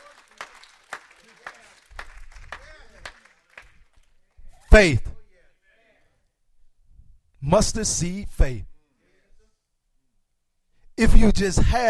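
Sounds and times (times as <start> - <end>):
audience clapping hands in praise: 0.0 - 4.4
speech: 4.8 - 5.1, 7.5 - 8.7, 11.0 - 11.8.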